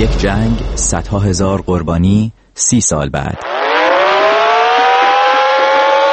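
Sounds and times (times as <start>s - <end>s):
speech: 0.1s - 3.6s
air raid red alert siren: 3.4s - 6.1s.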